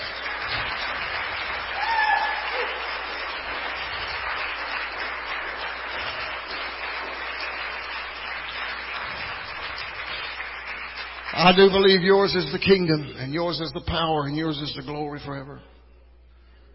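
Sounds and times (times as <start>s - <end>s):
audience clapping hands: 0.0s - 12.8s
speech: 11.4s - 15.7s.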